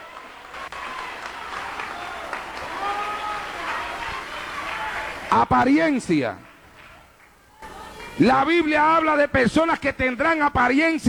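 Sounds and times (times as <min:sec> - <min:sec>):
audience applause: 0:00.0 - 0:05.5, 0:06.4 - 0:08.6
speech: 0:05.3 - 0:06.5, 0:08.2 - 0:11.0.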